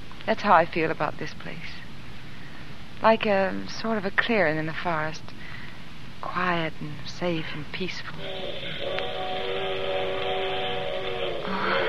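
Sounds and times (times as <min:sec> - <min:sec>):
speech: 0:00.3 - 0:01.8, 0:03.0 - 0:05.3, 0:06.2 - 0:09.5
train whistle blowing in distance: 0:08.2 - 0:11.8.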